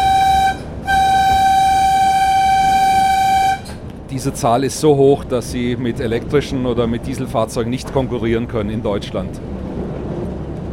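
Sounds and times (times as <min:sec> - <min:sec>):
steam locomotive whistle: 0:00.0 - 0:03.8
steam locomotive running on open track: 0:00.0 - 0:10.7
speech: 0:04.2 - 0:09.6.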